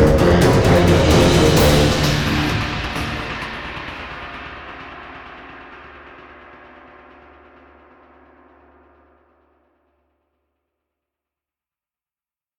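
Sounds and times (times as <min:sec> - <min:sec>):
danger alert music: 0:00.0 - 0:04.8.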